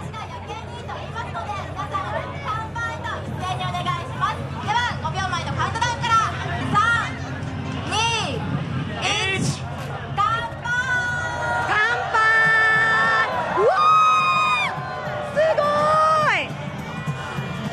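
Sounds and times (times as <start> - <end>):
lively party crowd chattering and shouting: 0.0 - 17.7
excited high-pitched party crowd cheers: 10.7 - 17.7.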